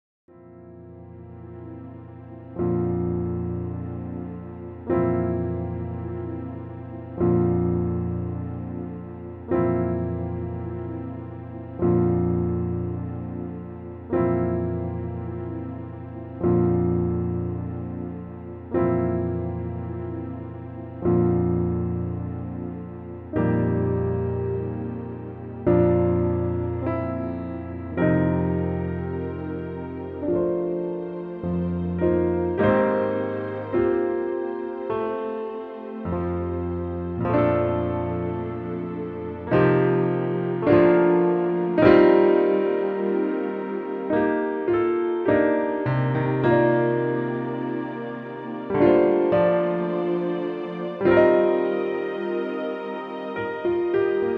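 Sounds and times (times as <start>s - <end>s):
medium low musical accompaniment: 0.4s - 54.3s.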